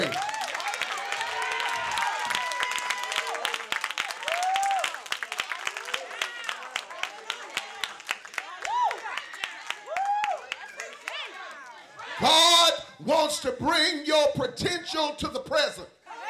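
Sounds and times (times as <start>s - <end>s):
audience clapping hands in praise: 0.0s - 12.2s
speech: 13.1s - 16.0s.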